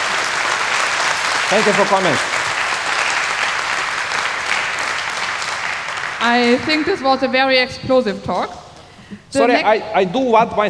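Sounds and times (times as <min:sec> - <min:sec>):
audience applause: 0:00.0 - 0:07.4
speech: 0:01.5 - 0:02.4, 0:06.2 - 0:10.6.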